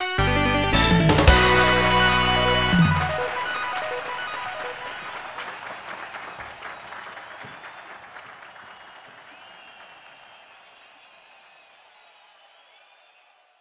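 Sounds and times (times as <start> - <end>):
level up jingle: 0.0 - 4.9.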